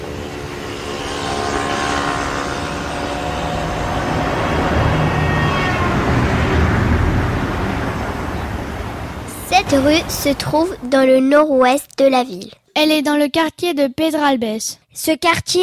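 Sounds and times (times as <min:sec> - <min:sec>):
car starting and driving off: 0:00.0 - 0:10.8
speech: 0:09.7 - 0:15.6.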